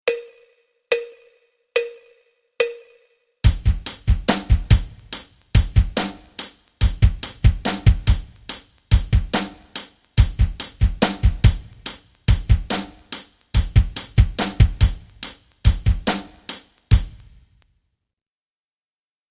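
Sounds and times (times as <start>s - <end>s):
rock rhythms: 3.4s - 17.4s.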